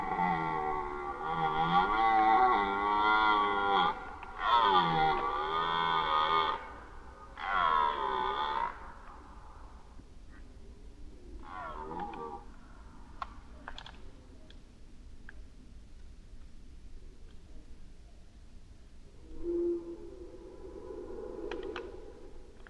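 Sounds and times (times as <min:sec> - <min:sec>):
red deer roaring during the rut: 0:00.0 - 0:09.1, 0:11.4 - 0:12.5.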